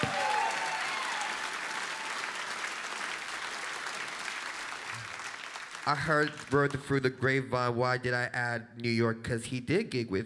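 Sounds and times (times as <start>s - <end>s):
scattered whoops: 0.0s - 2.5s
live audience cheering and applauding: 0.0s - 6.8s
speech: 5.8s - 10.2s.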